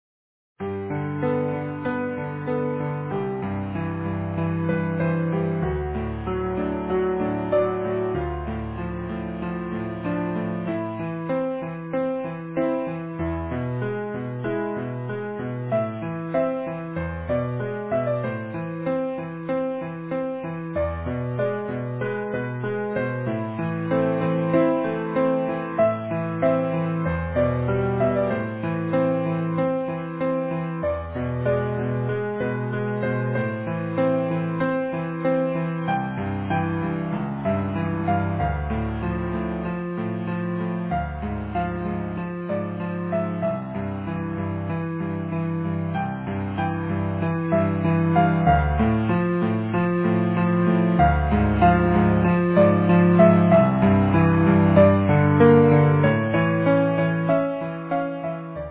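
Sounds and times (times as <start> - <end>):
easy piano: 0.6 - 58.6.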